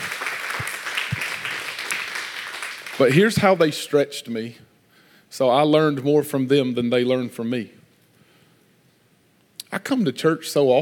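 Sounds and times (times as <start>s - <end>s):
audience applause: 0.0s - 3.3s
speech: 3.0s - 4.7s, 5.3s - 7.8s, 9.7s - 10.7s.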